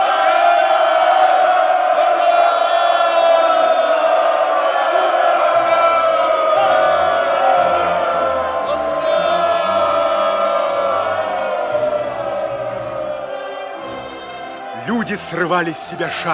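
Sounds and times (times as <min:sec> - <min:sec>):
huge crowd cheering hurrah for Lenin: 0:00.0 - 0:16.3
speech: 0:15.1 - 0:16.3.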